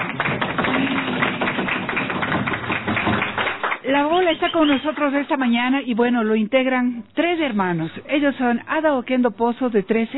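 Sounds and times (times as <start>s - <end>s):
audience applause: 0.0s - 3.8s
speech: 3.9s - 10.1s.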